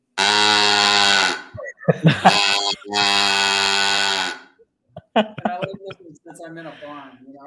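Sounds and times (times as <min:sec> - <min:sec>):
cow call animal sound effect device blasts: 0:00.2 - 0:01.5, 0:02.2 - 0:04.5
laughter: 0:01.5 - 0:03.1, 0:05.0 - 0:06.4
speech: 0:06.4 - 0:07.4.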